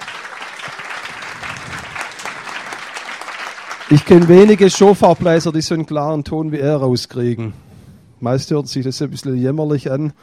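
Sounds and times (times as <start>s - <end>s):
audience applauding a shofar blower: 0.0s - 5.7s
speech: 3.9s - 7.6s, 8.2s - 10.2s.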